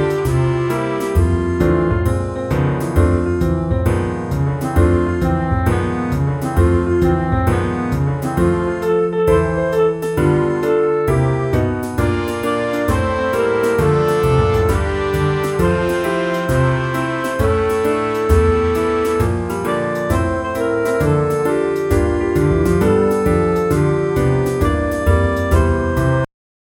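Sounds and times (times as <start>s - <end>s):
jazzy music: 0.0s - 26.3s.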